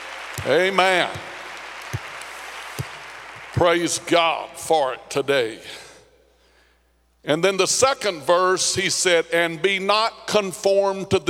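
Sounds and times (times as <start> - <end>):
audience hand clapping: 0.0 - 4.1
speech: 0.4 - 1.3, 3.6 - 5.8, 7.2 - 11.2.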